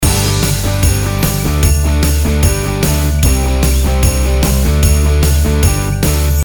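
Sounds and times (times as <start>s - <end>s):
Christmas advertising music loop: 0.0s - 6.4s.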